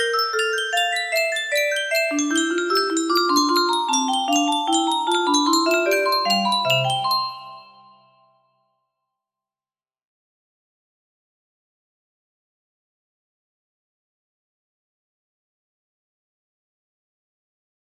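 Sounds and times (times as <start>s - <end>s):
Yamaha piano: 0.0s - 8.2s.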